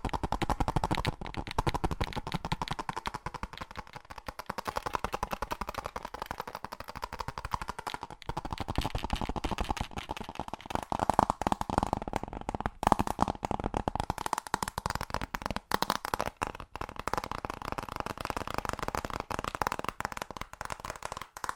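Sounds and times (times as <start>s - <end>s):
fast crisp tapping: 0.0s - 21.5s.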